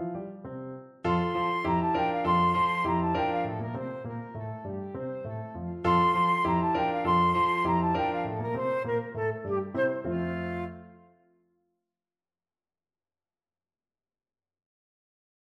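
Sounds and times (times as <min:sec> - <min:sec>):
musette: 0:00.0 - 0:11.2
flute: 0:01.1 - 0:11.2.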